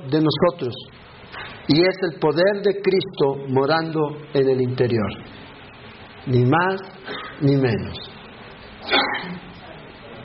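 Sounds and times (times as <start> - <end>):
speech: 0.0 - 1.0, 1.7 - 5.5, 6.2 - 8.1
quiet hum: 0.0 - 10.2
sneeze: 7.0 - 7.4, 8.8 - 9.5.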